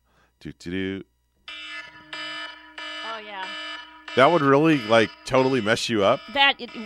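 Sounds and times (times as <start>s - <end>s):
speech: 0.4s - 1.1s, 4.2s - 6.8s
alarm going off, shrieking: 1.5s - 6.8s.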